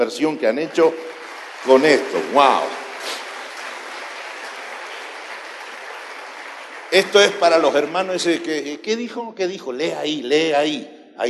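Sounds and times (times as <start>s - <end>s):
speech: 0.0s - 3.2s, 6.9s - 11.2s
church audience applause: 0.0s - 8.8s.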